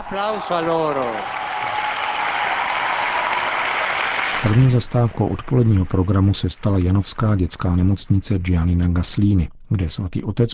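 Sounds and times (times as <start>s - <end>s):
audience applause: 0.0s - 7.4s
speech: 0.1s - 1.8s, 4.4s - 10.5s.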